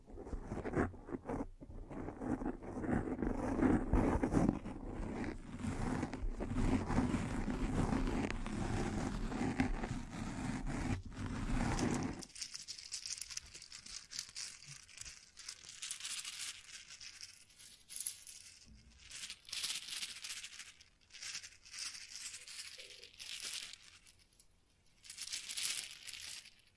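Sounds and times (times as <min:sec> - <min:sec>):
microphone brushing and scratching: 0:00.0 - 0:12.3.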